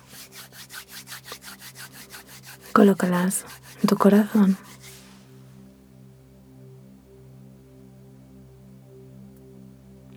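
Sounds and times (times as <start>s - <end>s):
palms of hands rubbing briskly together: 0.0s - 5.3s
speech: 2.8s - 4.7s.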